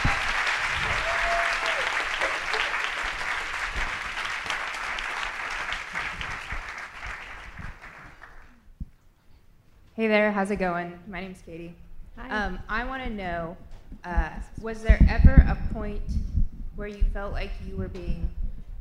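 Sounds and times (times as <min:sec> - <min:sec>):
crowd applauding: 0:00.0 - 0:08.6
speech: 0:10.0 - 0:16.2, 0:16.8 - 0:18.7.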